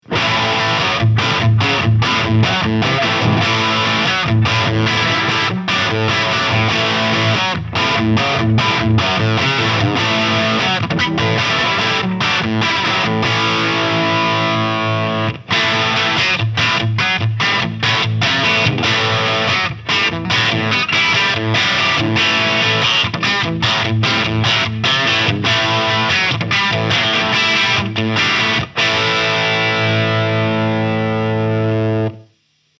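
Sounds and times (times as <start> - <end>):
Chapman Guitars ML2 Pro electric guitar with crunch tone: 0.0 - 32.7.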